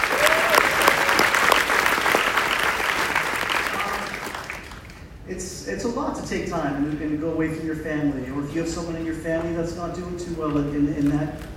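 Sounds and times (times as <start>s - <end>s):
golf clap from audience: 0.0s - 4.9s
speech: 5.7s - 11.5s.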